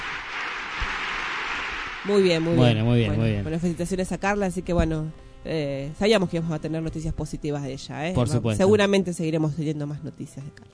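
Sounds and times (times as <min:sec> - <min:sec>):
applause from the stands for a young athlete: 0:00.0 - 0:03.0
speech: 0:02.0 - 0:10.7.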